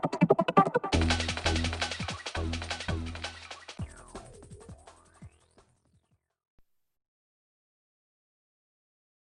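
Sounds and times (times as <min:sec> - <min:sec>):
techno music: 0:00.0 - 0:05.6.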